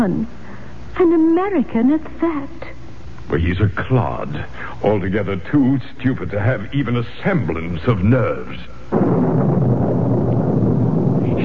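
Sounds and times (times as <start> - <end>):
speech: 0.0 - 0.4, 1.0 - 2.6, 3.3 - 9.8
thunder: 8.9 - 11.4.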